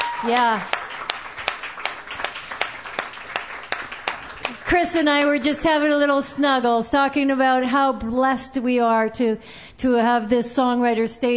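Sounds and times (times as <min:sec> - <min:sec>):
audience applause: 0:00.0 - 0:05.9
speech: 0:00.2 - 0:00.8, 0:04.7 - 0:11.3.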